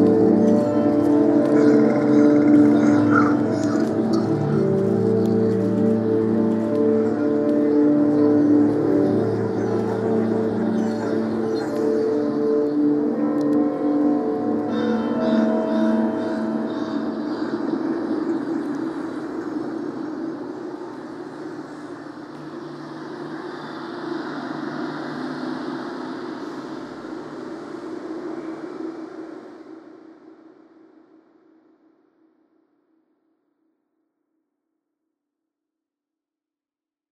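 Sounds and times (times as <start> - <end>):
luminous soundscape: 0.0 - 32.6.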